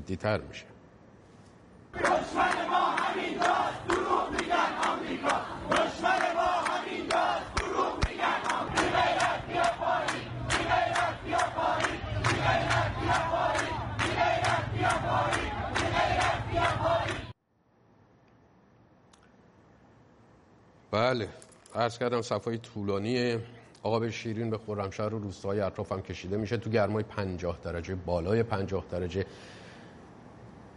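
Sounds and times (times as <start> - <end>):
speech: 0.0 - 0.7, 20.9 - 29.6
protest crowd chanting at demonstration: 1.9 - 17.4.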